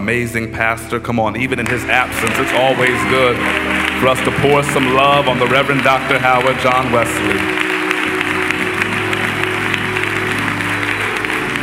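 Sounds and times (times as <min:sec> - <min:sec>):
speech: 0:00.0 - 0:07.7
large audience applauding: 0:01.6 - 0:11.6.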